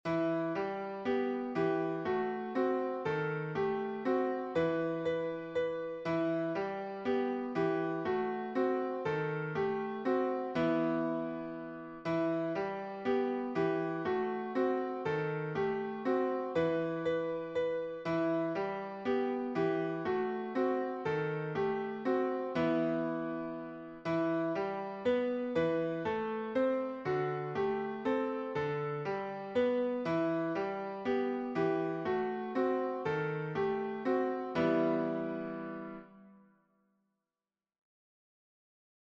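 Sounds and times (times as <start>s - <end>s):
piano melody: 0.0s - 36.4s.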